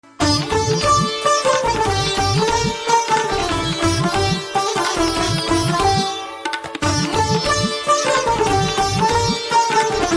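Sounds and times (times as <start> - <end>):
veena background music ringtone: 0.0 - 10.1.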